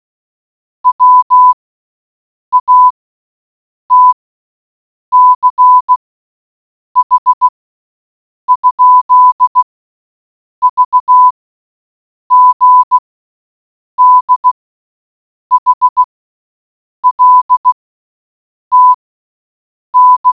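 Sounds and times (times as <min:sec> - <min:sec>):
morse code beeps: 0:00.9 - 0:01.6, 0:02.5 - 0:03.0, 0:03.9 - 0:04.2, 0:05.1 - 0:06.0, 0:07.0 - 0:07.5, 0:08.5 - 0:09.7, 0:10.6 - 0:11.3, 0:12.3 - 0:13.0, 0:14.0 - 0:14.6, 0:15.5 - 0:16.1, 0:17.0 - 0:17.8, 0:18.7 - 0:19.0, 0:20.0 - 0:20.3.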